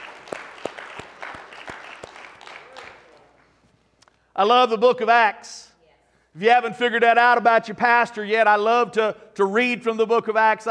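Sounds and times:
crowd hand clapping in praise: 0.0 - 3.6
speech: 4.4 - 5.6, 6.4 - 10.6.

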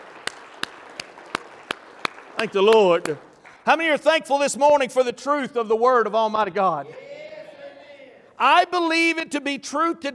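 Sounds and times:
audience hand clapping: 0.0 - 4.0
speech: 2.4 - 7.1, 8.4 - 10.1.

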